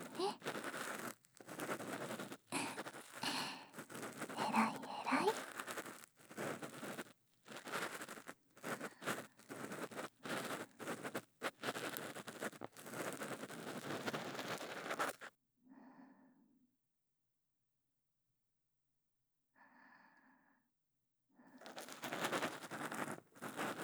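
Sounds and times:
intimate ear cleaning by two people: 0.0 - 15.3, 21.6 - 23.8.

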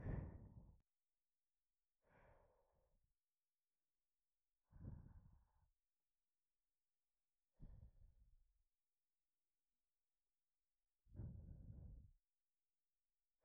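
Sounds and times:
breathing: 0.0 - 0.8, 2.0 - 3.1, 4.6 - 5.8, 7.5 - 8.1, 11.1 - 12.2.

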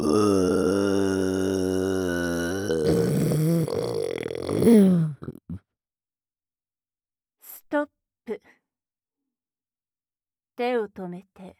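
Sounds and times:
burping: 0.0 - 5.4.

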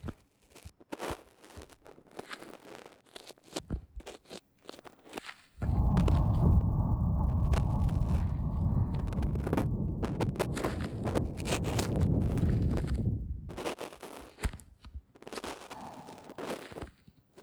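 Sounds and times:
blowing into ear, ASMR: 5.6 - 13.6, 15.7 - 16.6.

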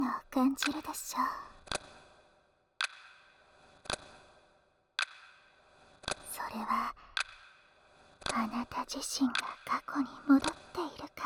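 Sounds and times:
speech: 0.3 - 1.5, 6.5 - 7.0, 8.3 - 11.2
clock ticking: 0.5 - 1.0.

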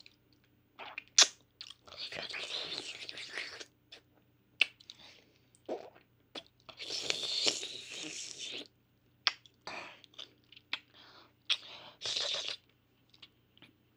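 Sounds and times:
ASMR oral sex mouth sounds: 0.8 - 5.0, 5.6 - 8.7, 11.5 - 12.6.

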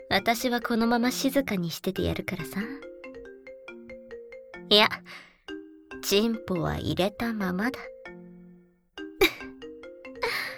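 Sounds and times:
phone ringtone melody: 0.0 - 10.5
speech: 0.2 - 2.9, 4.7 - 5.3, 6.0 - 7.9.

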